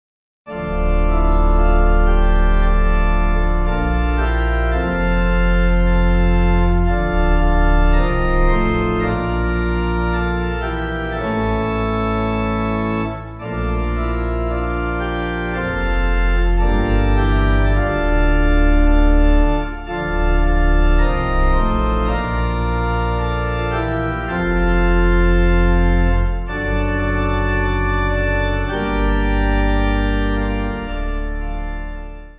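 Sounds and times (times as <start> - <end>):
pipe organ: 0.5 - 32.3.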